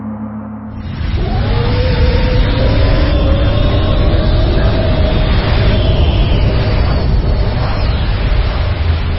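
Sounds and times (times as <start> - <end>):
rocket descending from the sky, radio drama sound effect: 0.1 - 9.1.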